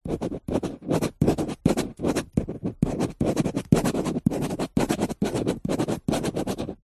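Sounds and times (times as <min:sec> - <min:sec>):
office biro pen writing on glossy paper: 0:00.0 - 0:06.8.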